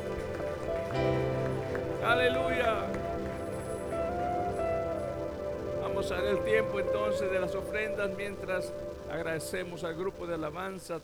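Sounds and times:
audience applause: 0:00.0 - 0:10.7
speech: 0:02.0 - 0:03.1, 0:06.0 - 0:11.0.

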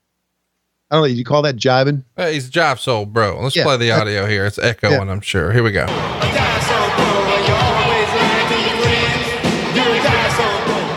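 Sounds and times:
speech: 0:00.9 - 0:06.4
capacity crowd at SkyDome cheering at WrestleMania: 0:05.9 - 0:10.9.

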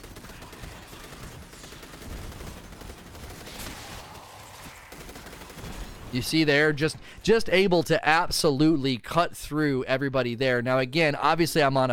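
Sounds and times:
rapid automatic gunfire from a weapon in a video game: 0:00.0 - 0:06.2
speech: 0:06.1 - 0:11.9.

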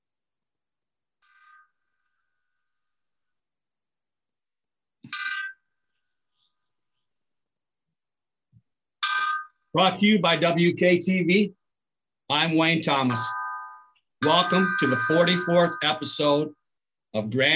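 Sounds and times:
speech: 0:09.7 - 0:11.6, 0:12.3 - 0:13.4, 0:14.2 - 0:17.5
bells ringing: 0:13.0 - 0:16.5.

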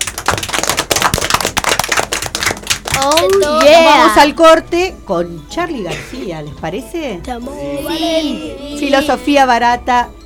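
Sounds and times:
small group applauding: 0:00.0 - 0:04.2
speech: 0:03.0 - 0:10.2.

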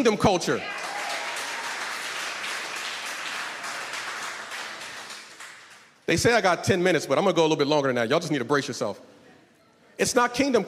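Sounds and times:
speech: 0:00.0 - 0:00.9, 0:06.1 - 0:09.1, 0:10.0 - 0:10.6
audience clapping: 0:00.6 - 0:06.1.

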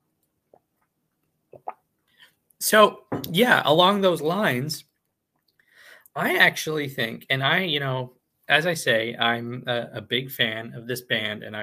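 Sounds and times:
sipping tea: 0:01.6 - 0:02.2
speech: 0:02.6 - 0:04.9, 0:06.2 - 0:11.6.

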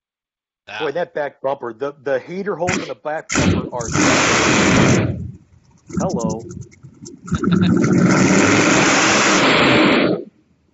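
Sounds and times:
speech: 0:00.7 - 0:04.8, 0:05.9 - 0:08.6
freshly assembled car engine roaring with too much assembly lube inside: 0:02.6 - 0:09.8.

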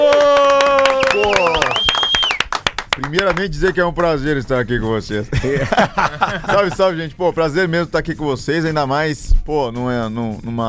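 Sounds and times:
whooping voices: 0:00.0 - 0:02.4
many hands clapping in a round of applause: 0:00.0 - 0:04.6
speech: 0:03.1 - 0:10.6
laughter: 0:05.3 - 0:06.9.

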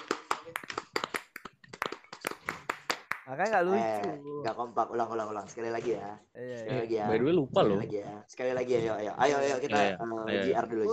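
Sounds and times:
tepuk pramuka, Indonesian scout clapping routine by a rehearsing group: 0:00.0 - 0:03.7
speech: 0:03.3 - 0:10.9.

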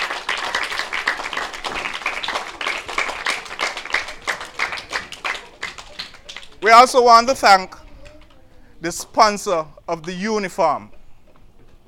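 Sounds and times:
audience applause: 0:00.0 - 0:06.8
speech: 0:06.6 - 0:07.8, 0:08.8 - 0:11.0.

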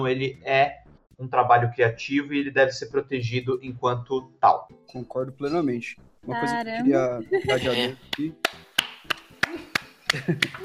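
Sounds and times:
speech: 0:00.0 - 0:08.6, 0:10.1 - 0:10.6
laughter: 0:06.9 - 0:08.4, 0:09.4 - 0:10.6
sharp hand claps: 0:07.6 - 0:10.6.

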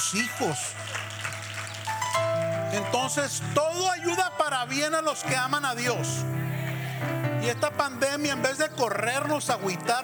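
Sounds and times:
speech: 0:00.0 - 0:01.0, 0:02.7 - 0:06.4, 0:07.0 - 0:10.0
crowd applause: 0:00.0 - 0:03.5, 0:06.3 - 0:07.6.

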